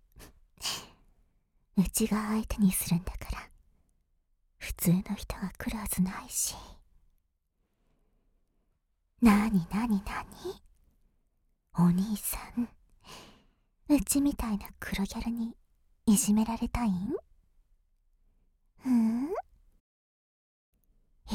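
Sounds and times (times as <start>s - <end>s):
ASMR whispering: 1.8s - 3.5s, 4.6s - 6.8s, 9.2s - 10.6s, 11.8s - 12.8s, 14.0s - 17.2s.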